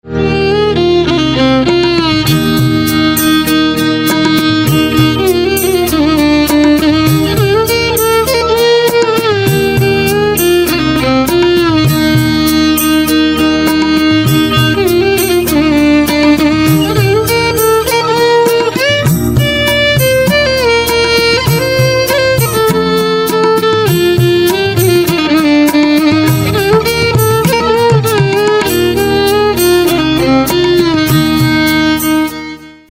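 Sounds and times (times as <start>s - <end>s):
violin: 0.0s - 32.9s.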